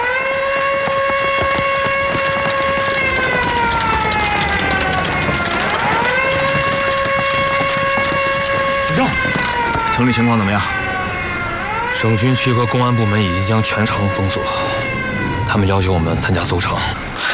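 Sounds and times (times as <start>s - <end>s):
alarm siren wailing: 0.0s - 17.2s.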